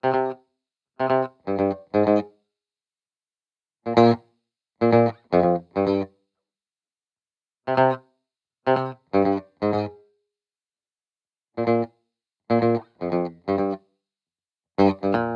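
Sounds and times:
70s style guitar in C minor: 0.0 - 2.5, 3.8 - 6.4, 7.6 - 10.2, 11.6 - 14.0, 14.8 - 15.3.

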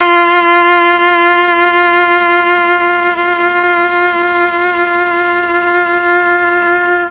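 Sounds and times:
Mellotron viola note F3: 0.0 - 7.0.

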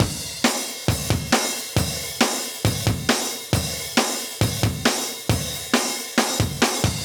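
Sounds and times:
live drum breaks: 0.0 - 7.0.

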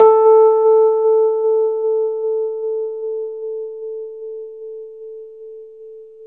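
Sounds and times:
Rhodes electric piano: 0.0 - 4.6.

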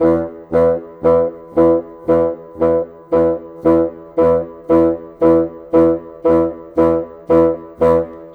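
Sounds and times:
cinematic bassoon: 0.0 - 8.3.

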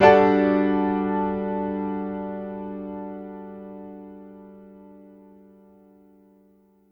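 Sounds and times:
stacked piano G major seventh chord: 0.0 - 6.4.

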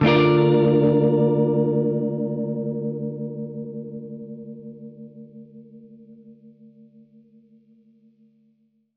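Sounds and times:
Gretsch guitar D minor flat six chord: 0.0 - 7.1.

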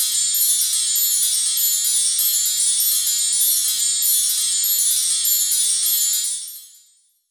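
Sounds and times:
wind chimes: 0.0 - 7.2.

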